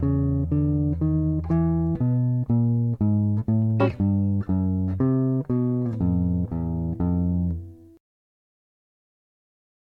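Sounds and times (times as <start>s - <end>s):
jazz accompaniment: 0.0s - 7.6s.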